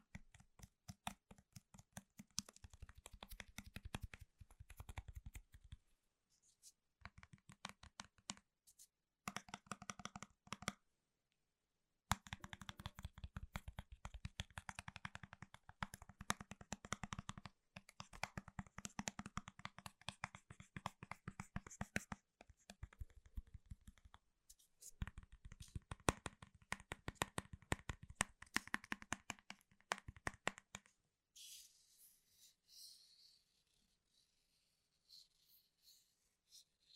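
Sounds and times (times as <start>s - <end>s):
fast tapping on Apple keyboards, laptops and product boxes: 0.0s - 5.8s, 9.3s - 10.8s, 12.1s - 24.2s, 25.0s - 30.9s.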